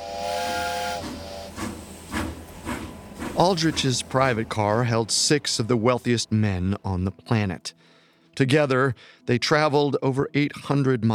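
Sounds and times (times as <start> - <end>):
steam train whistle: 0.0 - 4.2
steam train chugging away from the station: 0.0 - 6.5
speech: 3.4 - 11.1.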